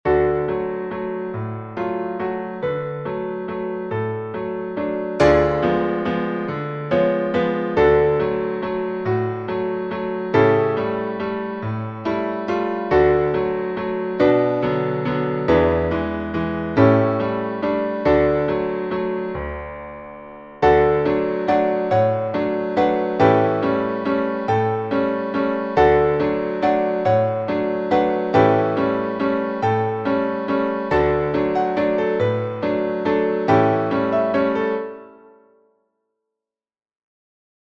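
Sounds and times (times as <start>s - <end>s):
piano: 0.0s - 36.1s.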